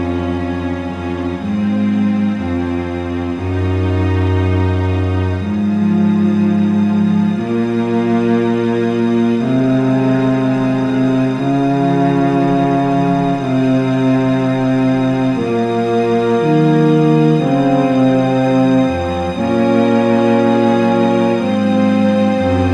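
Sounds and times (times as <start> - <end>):
cello concerto movement: 0.0 - 22.7.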